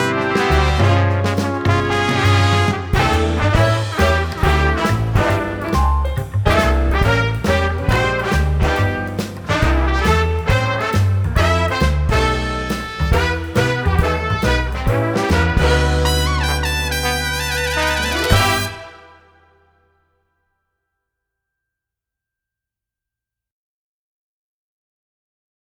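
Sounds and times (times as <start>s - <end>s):
trombone solo: 0.0s - 19.7s.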